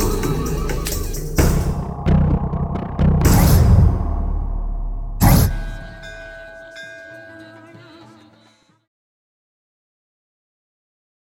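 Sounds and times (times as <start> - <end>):
theme music: 0.0 - 8.1.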